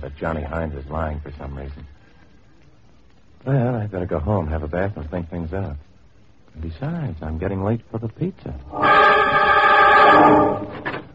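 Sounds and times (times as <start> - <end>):
speech: 0.0 - 2.0, 3.4 - 5.9, 6.6 - 11.0
door creaking open: 8.7 - 11.1.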